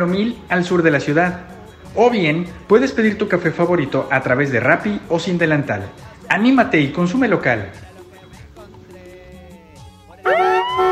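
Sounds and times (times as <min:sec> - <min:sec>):
speech: 0:00.0 - 0:07.8
car horn honk: 0:10.2 - 0:10.8.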